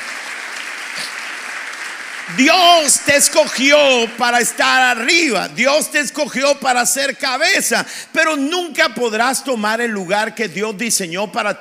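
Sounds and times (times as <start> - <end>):
audience applause: 0.0 - 4.9
speech: 2.3 - 11.5.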